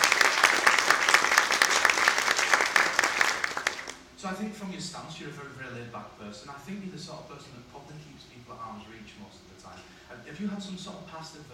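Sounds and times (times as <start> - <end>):
audience applause: 0.0 - 4.0
speech: 4.4 - 11.5.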